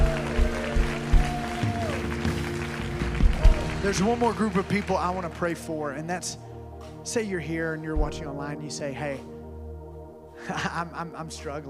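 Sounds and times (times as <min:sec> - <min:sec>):
audience clapping in praise: 0:00.0 - 0:06.0
speech: 0:03.8 - 0:09.3, 0:10.4 - 0:11.6.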